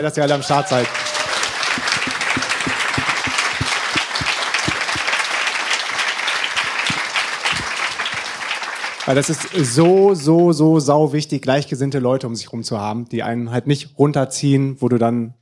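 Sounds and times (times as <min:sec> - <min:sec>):
speech: 0:00.0 - 0:01.2, 0:09.1 - 0:15.4
audience applause: 0:00.0 - 0:10.2.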